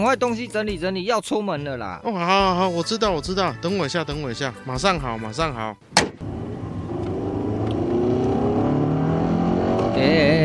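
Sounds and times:
speech: 0.0s - 6.3s
car engine rumbling as it pulls away: 6.2s - 10.4s.

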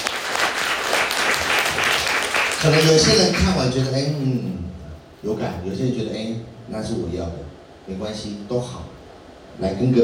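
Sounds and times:
audience applause: 0.0s - 3.7s
speech: 2.6s - 9.0s, 9.6s - 10.0s.

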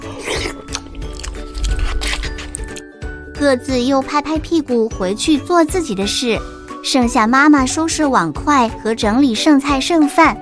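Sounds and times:
family gobbling dinner: 0.0s - 2.8s
speech: 3.4s - 10.3s.

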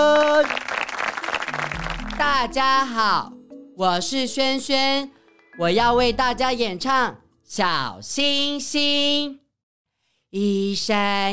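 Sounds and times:
applause: 0.0s - 2.6s
speech: 2.4s - 9.4s, 10.3s - 11.3s.

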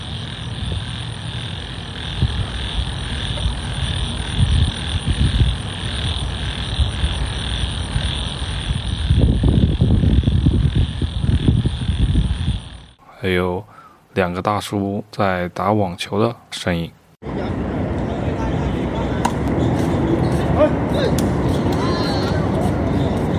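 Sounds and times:
insects chirping in a park: 0.0s - 13.0s, 18.4s - 23.3s
wind blowing in a park: 0.0s - 13.1s, 17.2s - 23.3s
speech: 13.3s - 17.3s.

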